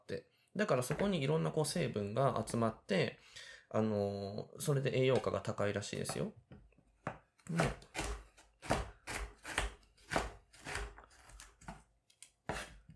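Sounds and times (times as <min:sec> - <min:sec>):
speech: 0:00.1 - 0:06.5, 0:07.5 - 0:08.0
knife chopping carrots on a cutting board: 0:07.1 - 0:11.5, 0:12.4 - 0:12.9.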